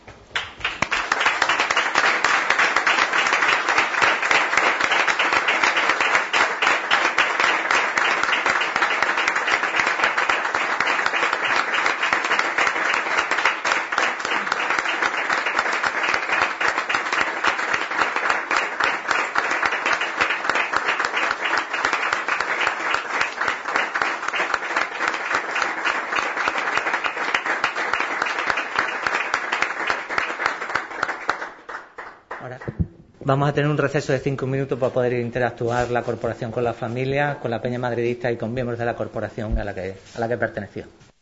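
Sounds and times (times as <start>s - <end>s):
standing audience applause: 0.3s - 32.8s
speech: 33.3s - 41.0s.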